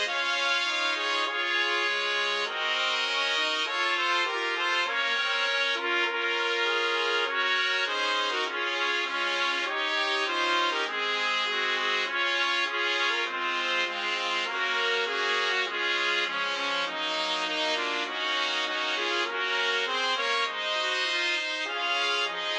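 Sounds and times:
four trumpets playing a national anthem: 0.0s - 22.5s.

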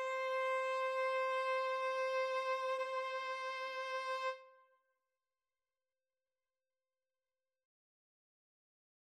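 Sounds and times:
violin and cello duet: 0.0s - 4.4s.

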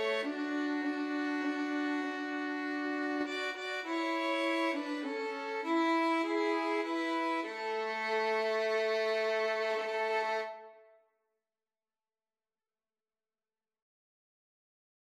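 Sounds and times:
violin duet of a hymn: 0.0s - 10.8s.

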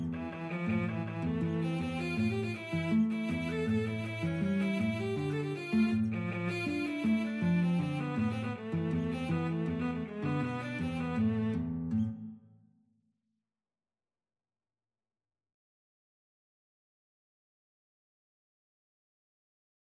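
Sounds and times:
guitar and cello duet: 0.0s - 12.3s.

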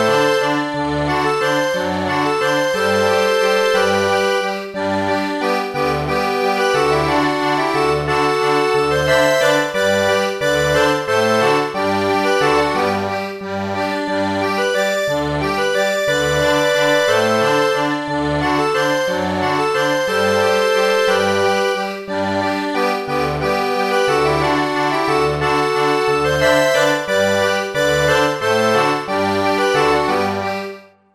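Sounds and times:
accordion: 0.0s - 31.1s.

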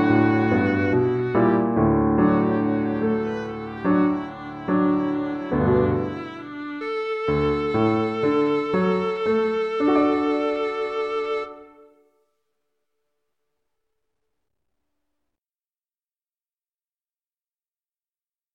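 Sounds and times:
viola duet: 0.0s - 12.0s.

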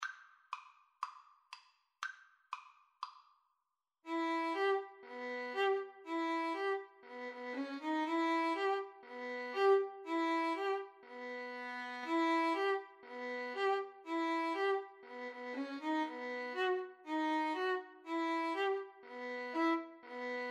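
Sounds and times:
Bulgarish violin: 4.1s - 20.4s.

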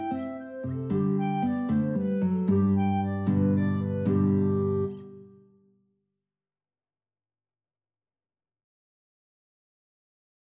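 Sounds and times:
clarinet in a guitar and clarinet duet: 0.0s - 5.6s
guitar in a guitar and clarinet duet: 0.0s - 5.6s.

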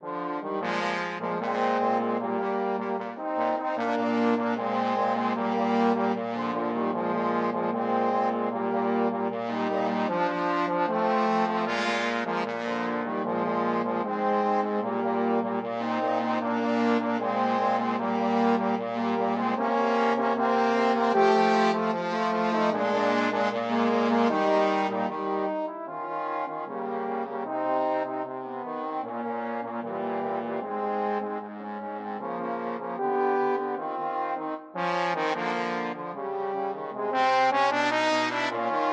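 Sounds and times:
trombone trio: 0.0s - 38.9s.

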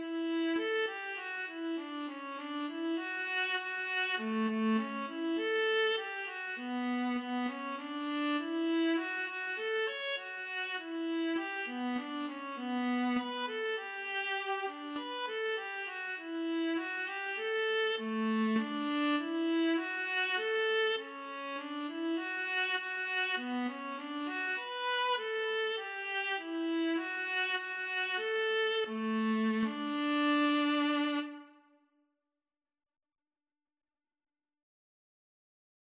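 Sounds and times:
violin and viola duet playing a national anthem: 0.0s - 31.6s.

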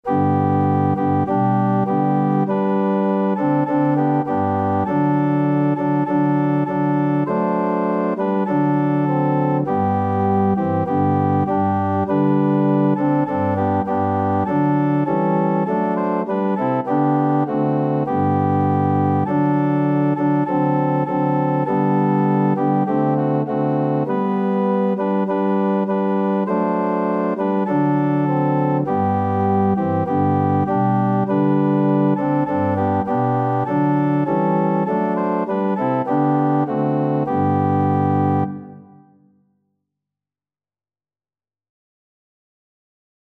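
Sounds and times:
organ hymn: 0.0s - 39.1s.

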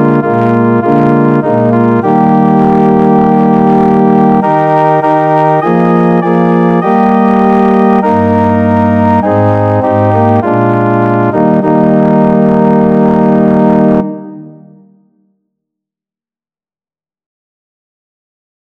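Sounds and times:
organ: 0.0s - 14.8s.

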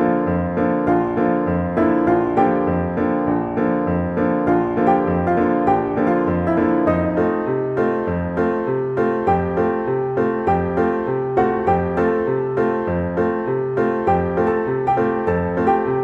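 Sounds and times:
beer barrel piano: 0.0s - 16.0s.

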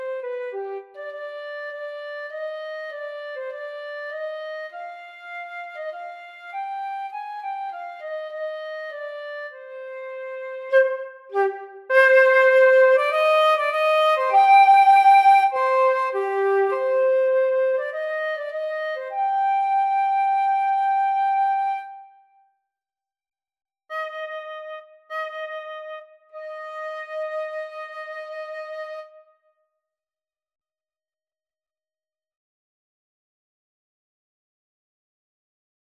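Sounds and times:
flute and clarinet duet: 0.0s - 22.0s, 23.9s - 29.2s.

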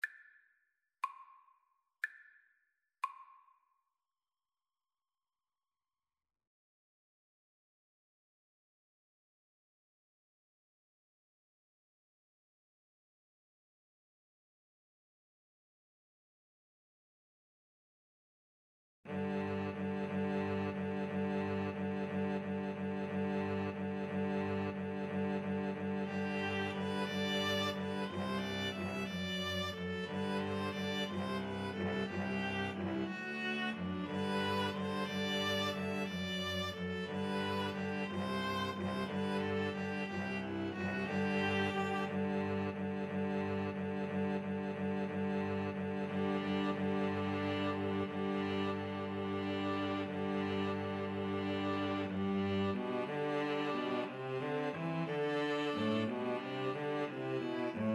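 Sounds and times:
string trio playing: 19.1s - 57.9s.

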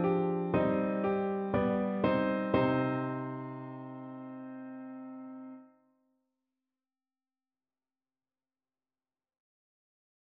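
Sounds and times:
Baroque piano piece: 0.0s - 5.7s.

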